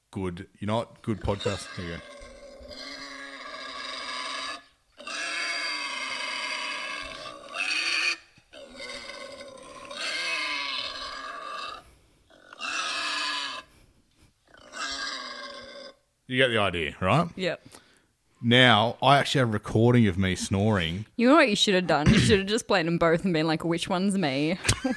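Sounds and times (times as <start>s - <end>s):
speech: 0.2s - 2.1s, 16.3s - 17.8s, 18.4s - 24.9s
wild boar grunting: 1.0s - 13.7s, 14.4s - 16.0s.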